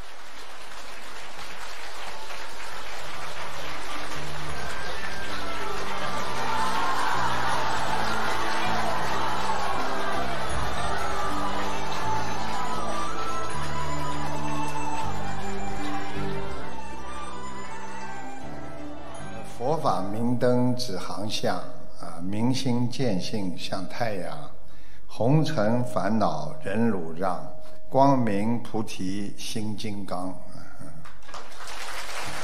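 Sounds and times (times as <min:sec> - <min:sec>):
warm applause: 0:00.0 - 0:18.4, 0:30.8 - 0:32.4
speech: 0:19.9 - 0:24.4, 0:25.2 - 0:30.4.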